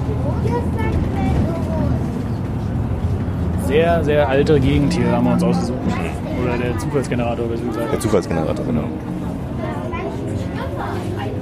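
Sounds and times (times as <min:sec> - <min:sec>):
express bus engine and road noise rumble: 0:00.0 - 0:11.4
speech: 0:03.7 - 0:09.3.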